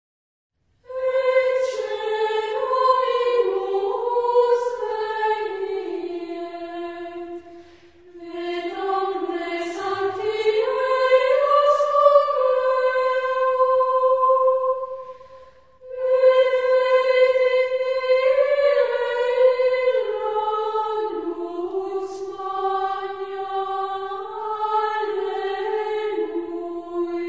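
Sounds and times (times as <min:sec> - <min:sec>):
Gregorian chant: 0:00.8 - 0:27.2.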